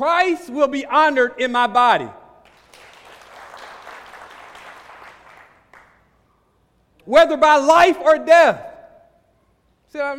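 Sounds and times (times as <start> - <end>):
speech: 0.0 - 2.2, 7.1 - 8.7, 9.9 - 10.1
sparse claps: 2.4 - 6.1.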